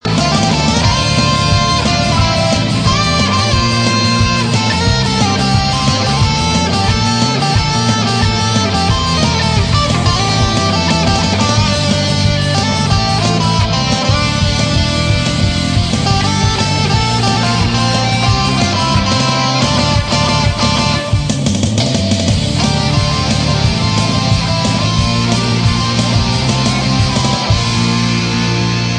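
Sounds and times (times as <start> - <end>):
guitar cover: 0.0 - 28.9.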